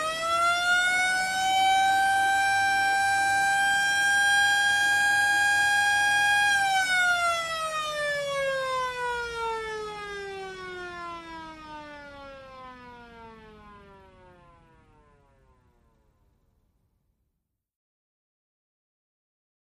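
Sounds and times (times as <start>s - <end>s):
dual hand-turned siren malfunctioning: 0.0s - 14.8s.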